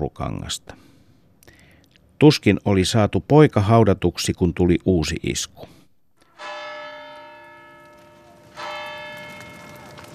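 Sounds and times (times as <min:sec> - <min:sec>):
speech: 0:00.0 - 0:00.9, 0:02.2 - 0:05.8
church bells ringing: 0:06.2 - 0:10.1.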